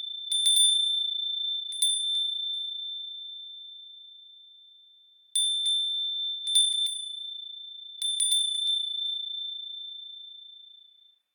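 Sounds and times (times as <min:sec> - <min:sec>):
furin wind chime: 0:00.0 - 0:10.4.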